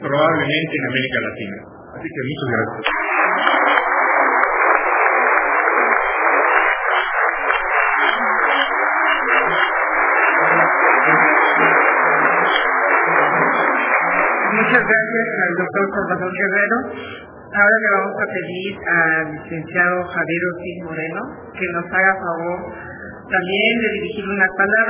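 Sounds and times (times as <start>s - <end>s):
speech: 0.0s - 3.1s, 14.7s - 24.8s
audience applause: 2.8s - 15.1s.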